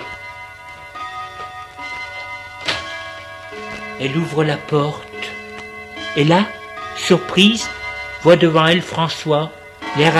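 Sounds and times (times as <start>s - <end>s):
clock striking the hour: 0.0s - 10.1s
speech: 4.0s - 5.1s, 6.1s - 10.1s.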